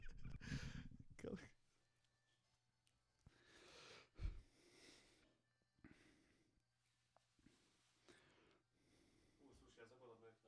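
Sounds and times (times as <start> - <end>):
vocals: 0.0 - 1.6.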